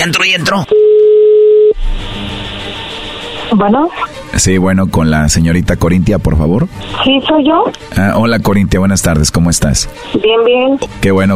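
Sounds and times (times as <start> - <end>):
speech: 0.0 - 0.8, 3.5 - 11.3
steady single-pitched telephone dial tone: 0.7 - 1.8
burst of line noise and hiss: 1.8 - 8.3.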